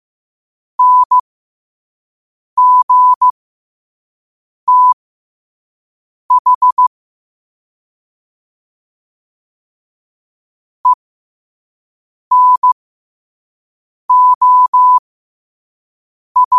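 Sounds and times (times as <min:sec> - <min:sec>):
morse code at 5 wpm: 0:00.8 - 0:01.2, 0:02.6 - 0:03.3, 0:04.7 - 0:05.0, 0:06.3 - 0:06.8, 0:12.3 - 0:12.8, 0:14.1 - 0:15.0, 0:16.4 - 0:16.5.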